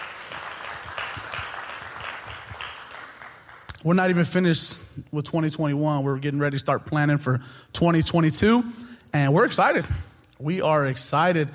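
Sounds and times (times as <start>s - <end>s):
applause: 0.0s - 3.8s
speech: 3.8s - 11.5s.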